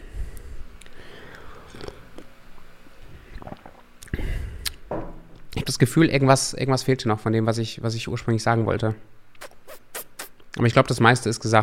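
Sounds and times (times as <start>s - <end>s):
coffee being sipped with slurping and swallowing: 1.6s - 2.4s, 3.2s - 4.8s
speech: 5.8s - 9.2s, 10.6s - 11.6s.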